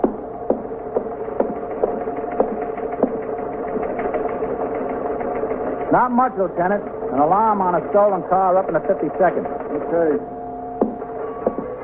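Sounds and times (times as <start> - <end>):
teletype machine clattering: 0.9 - 10.2
speech: 5.9 - 10.4.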